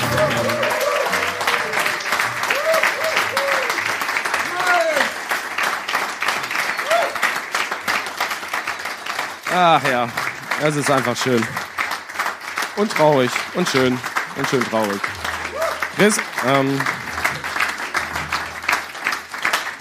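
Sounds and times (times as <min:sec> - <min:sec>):
audience applause: 0:00.0 - 0:19.7
speech: 0:10.6 - 0:11.6, 0:12.8 - 0:15.2, 0:16.0 - 0:17.0.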